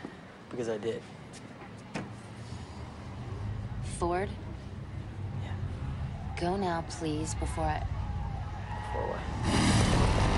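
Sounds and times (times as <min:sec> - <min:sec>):
speech: 0:00.5 - 0:01.2, 0:04.0 - 0:04.4, 0:06.4 - 0:08.0, 0:08.9 - 0:09.7
biker gang motorcycles roaring into town, one a chopper: 0:02.5 - 0:10.3.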